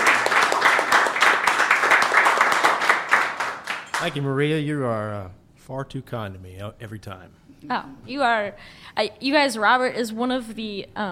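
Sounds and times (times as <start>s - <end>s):
audience applause: 0.0s - 4.2s
speech: 4.0s - 11.1s.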